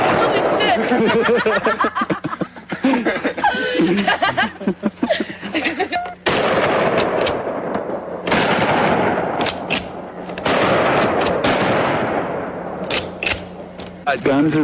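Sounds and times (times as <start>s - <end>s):
people laughing and chattering: 0.0s - 6.2s
pump-action shotgun shots fired in a forest: 6.2s - 13.7s.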